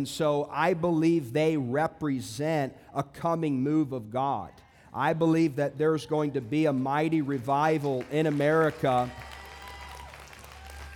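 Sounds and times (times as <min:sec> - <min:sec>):
speech: 0:00.0 - 0:09.3
audience applause: 0:07.9 - 0:10.9.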